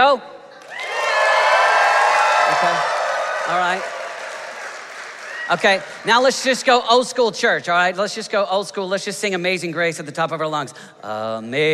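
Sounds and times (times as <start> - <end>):
speech: 0.1 - 0.3, 3.5 - 4.0, 5.5 - 11.7
crowd cheering and clapping: 0.6 - 6.7.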